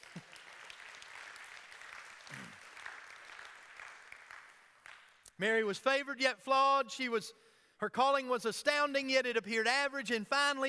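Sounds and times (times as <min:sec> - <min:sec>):
audience clapping: 0:00.0 - 0:05.4
speech: 0:05.4 - 0:10.6.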